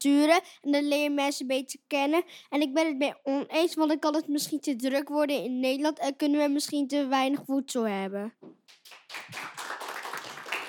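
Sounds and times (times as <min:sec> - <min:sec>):
speech: 0:00.0 - 0:09.6
audience applause: 0:08.9 - 0:10.6.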